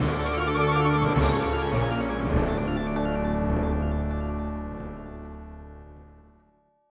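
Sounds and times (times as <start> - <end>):
fanfare on Roland SC 55: 0.0 - 5.5.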